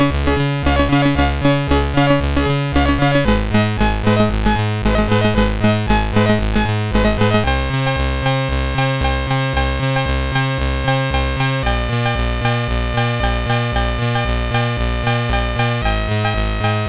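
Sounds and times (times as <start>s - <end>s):
chiptune music from a sound chip: 0.0s - 16.8s.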